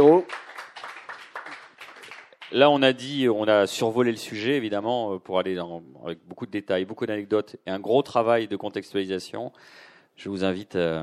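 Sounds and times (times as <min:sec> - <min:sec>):
audience applause: 0:00.0 - 0:02.6
speech: 0:02.5 - 0:11.0.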